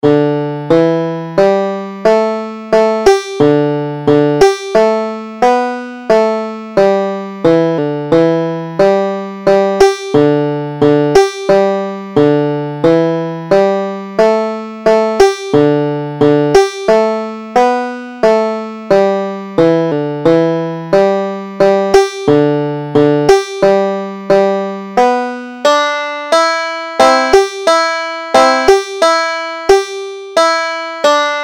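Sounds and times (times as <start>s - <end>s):
banjo: 0.0s - 31.4s.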